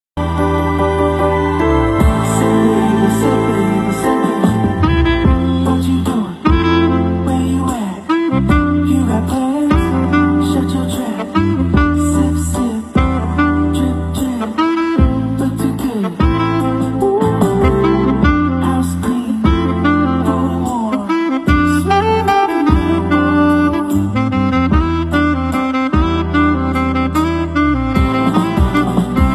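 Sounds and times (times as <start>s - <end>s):
saxophone ringtone: 0.2s - 15.2s, 16.3s - 29.3s.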